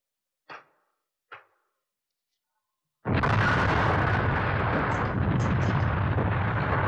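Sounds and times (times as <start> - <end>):
stone landmine explosion: 3.1 - 6.8.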